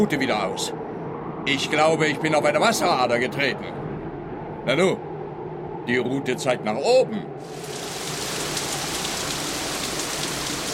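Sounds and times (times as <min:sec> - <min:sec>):
speech: 0:00.0 - 0:00.9, 0:01.5 - 0:03.8, 0:04.6 - 0:05.1, 0:05.8 - 0:07.8
rain: 0:07.4 - 0:10.7.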